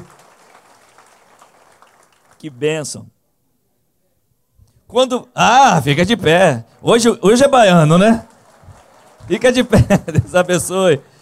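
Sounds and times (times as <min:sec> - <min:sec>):
audience clapping: 0:00.0 - 0:02.6, 0:06.0 - 0:11.1
speech: 0:02.4 - 0:03.2, 0:04.9 - 0:08.3, 0:09.3 - 0:11.1
laughter: 0:08.2 - 0:10.8.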